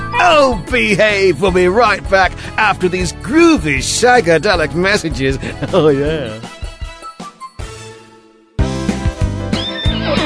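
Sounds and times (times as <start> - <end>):
speech: 0.2 - 6.6
horse neighing: 9.6 - 10.2.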